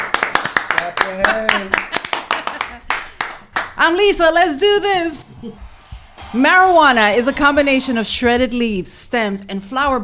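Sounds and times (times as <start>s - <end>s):
hands clapping: 0.0s - 3.8s
speech: 1.2s - 1.8s, 3.8s - 5.6s, 6.3s - 10.0s.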